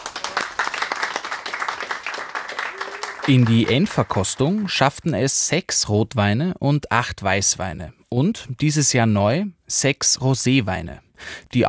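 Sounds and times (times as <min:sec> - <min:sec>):
applause: 0:00.0 - 0:05.0
speech: 0:03.3 - 0:11.6.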